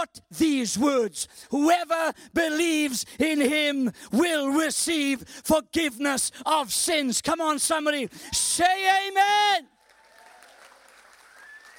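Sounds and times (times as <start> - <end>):
speech: 0.0 - 9.7
weak audience clapping: 9.7 - 11.7.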